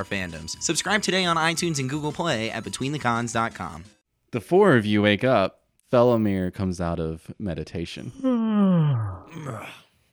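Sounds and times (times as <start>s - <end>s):
speech: 0.0s - 9.8s
natural yawn: 8.0s - 10.0s.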